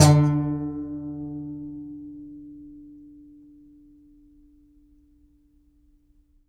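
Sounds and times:
contrabass balalaika plucked strings: 0.0 - 2.4.

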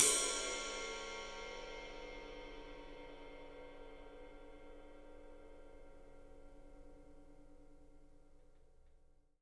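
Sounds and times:
ride cymbal, 3D drums: 0.0 - 5.1.

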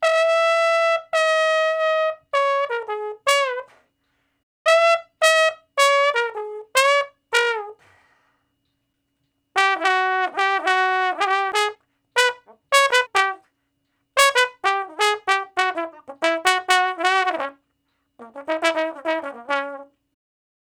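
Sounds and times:
trombone shuffle in D-flat: 0.0 - 3.8, 4.7 - 8.0, 9.6 - 13.5, 14.2 - 17.6, 18.2 - 20.0.

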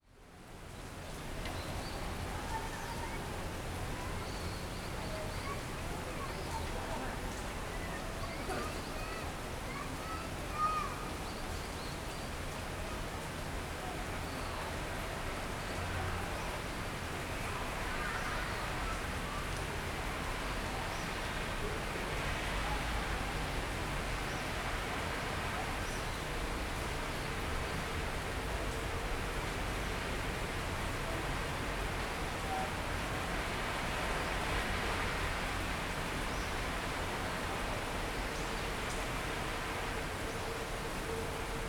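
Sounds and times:
rain on concrete: 0.0 - 41.6.

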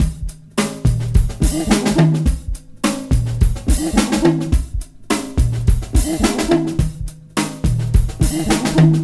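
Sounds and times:
funky breakbeat loop at 106 BPM: 0.0 - 9.0.

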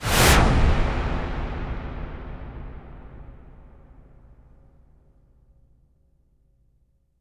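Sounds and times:
wipe whoosh: 0.0 - 1.5
cinematic impact: 0.0 - 4.7.

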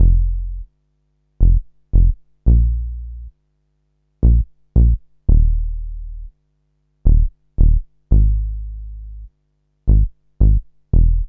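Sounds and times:
Rhodes electric piano bass: 0.0 - 0.7, 1.4 - 3.3, 4.2 - 6.3, 7.1 - 9.3, 9.9 - 11.2.

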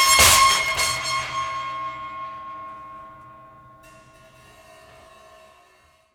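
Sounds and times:
prepared drums: 0.1 - 1.5.

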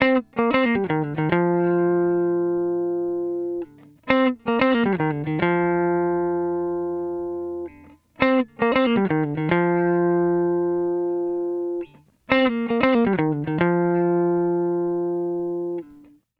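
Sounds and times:
disco guitar picking: 0.0 - 16.2.

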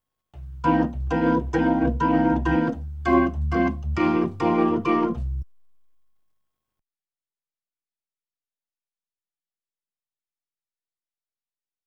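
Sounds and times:
Hammond B3 organ: 0.6 - 5.5.

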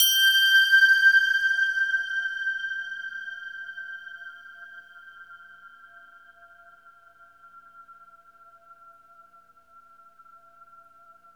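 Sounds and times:
carillon bells: 0.0 - 1.6.

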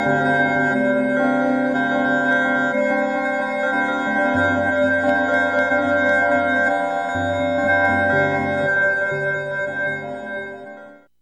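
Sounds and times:
synth bells: 0.0 - 11.1.

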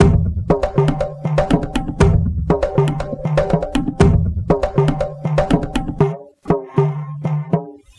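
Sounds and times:
acoustic tabla beat: 0.0 - 7.9.

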